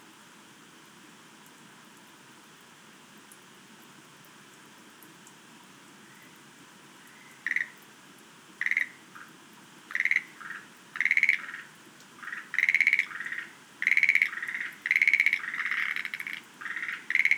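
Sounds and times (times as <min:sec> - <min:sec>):
faint background hiss: 0:00.0 - 0:17.3
Schlegel's green tree frog rattled croaks: 0:07.0 - 0:07.9, 0:08.6 - 0:17.3.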